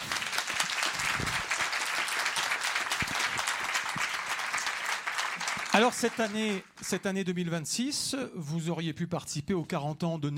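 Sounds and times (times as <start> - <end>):
audience applause: 0.0 - 6.8
speech: 5.8 - 10.3.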